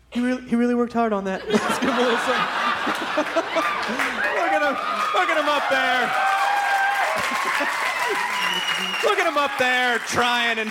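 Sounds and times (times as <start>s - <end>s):
speech: 0.2s - 6.4s, 7.2s - 10.6s
laughter: 1.4s - 6.1s, 6.9s - 9.9s
audience applause: 2.0s - 10.6s
whistle-like tones in the crowd: 8.3s - 9.4s.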